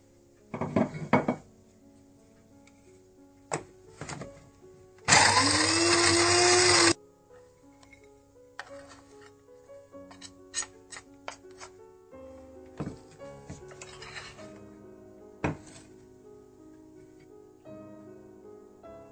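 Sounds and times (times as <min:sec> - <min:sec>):
grinder jar and lid knocking: 0:00.6 - 0:01.4
kitchen grinder grinding almonds and walnuts: 0:05.1 - 0:07.0.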